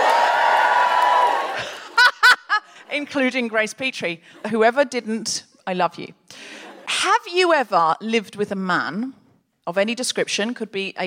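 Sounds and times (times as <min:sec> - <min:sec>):
sustained whoop: 0:00.0 - 0:01.6
audience cheering: 0:00.0 - 0:02.1
short loud voiced bursts like laughter: 0:01.5 - 0:02.8
speech: 0:03.0 - 0:11.0.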